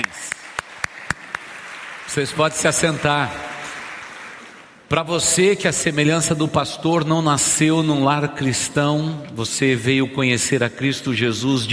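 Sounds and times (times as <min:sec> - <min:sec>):
sharp loud claps: 0:00.0 - 0:04.8
audience applauding: 0:00.0 - 0:04.9
speech: 0:02.1 - 0:03.6, 0:04.9 - 0:11.7.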